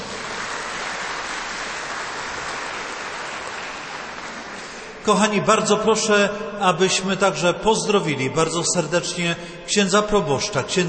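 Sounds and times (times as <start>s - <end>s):
crowd applause: 0.0s - 5.1s
speech: 5.0s - 10.8s.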